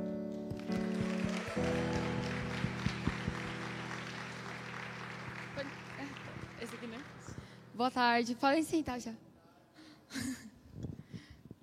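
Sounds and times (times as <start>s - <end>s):
audience applause: 0.5s - 7.6s
speech: 7.8s - 9.2s.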